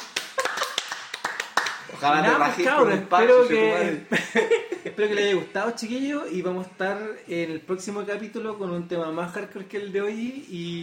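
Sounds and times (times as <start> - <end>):
light applause: 0.0 - 2.1
speech: 2.0 - 10.8
laughter: 3.8 - 5.2.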